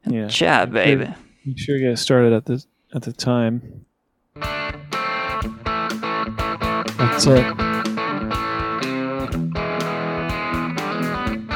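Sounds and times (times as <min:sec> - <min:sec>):
speech: 0:00.1 - 0:03.8, 0:07.0 - 0:07.7
stereotypical blues guitar riff: 0:04.4 - 0:11.5.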